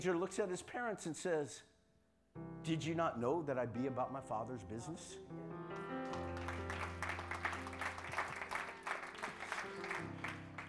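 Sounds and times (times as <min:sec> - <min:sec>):
speech: 0:00.0 - 0:01.7, 0:02.6 - 0:05.6
audience clapping: 0:05.7 - 0:10.6.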